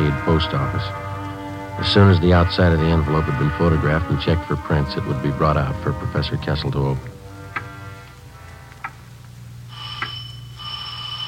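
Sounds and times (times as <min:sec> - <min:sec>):
speech: 0:00.1 - 0:01.2, 0:01.8 - 0:07.1
front doorbell ringing: 0:09.7 - 0:11.2.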